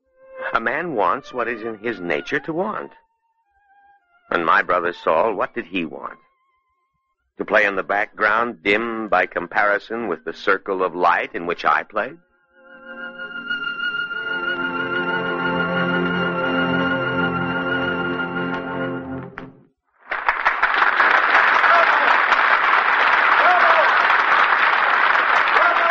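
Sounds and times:
orchestral music: 0.1s - 2.9s, 12.6s - 19.6s
speech: 0.6s - 3.0s, 4.3s - 6.2s, 7.4s - 12.2s
audience applause in a concert hall: 20.1s - 25.9s.

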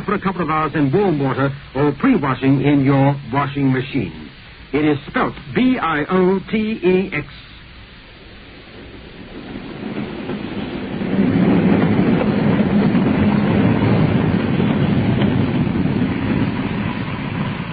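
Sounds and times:
speech: 0.0s - 7.5s
train rumbling on rails: 0.0s - 17.7s
train wheels clattering: 8.7s - 17.7s.

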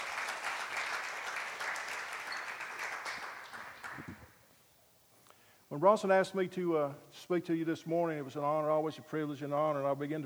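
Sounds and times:
audience applause: 0.0s - 4.3s
speech: 5.7s - 10.2s.

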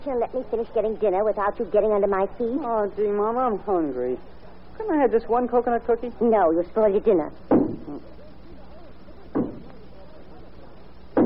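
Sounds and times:
faint murmuring background: 0.0s - 11.2s
speech: 0.1s - 8.2s
dull knocks: 9.4s - 9.7s.

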